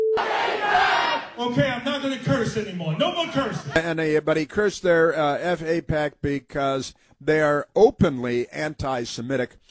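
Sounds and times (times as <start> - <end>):
rally crowd cheering and shouting: 0.2 - 1.3
speech: 1.4 - 9.6.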